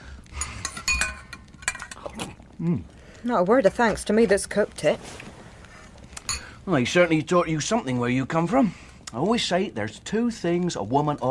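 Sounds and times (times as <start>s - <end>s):
hot dinner plate set down on a table, crockery and cutlery clinking: 0.4s - 2.1s, 6.2s - 6.6s
speech: 2.6s - 5.3s, 6.7s - 11.2s.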